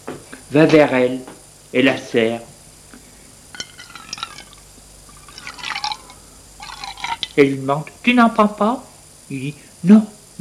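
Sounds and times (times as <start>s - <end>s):
speech: 0.5s - 2.5s, 7.4s - 10.3s
glass clinking: 3.5s - 7.4s
liquid gurgling from a bottle into a glass: 3.6s - 7.4s.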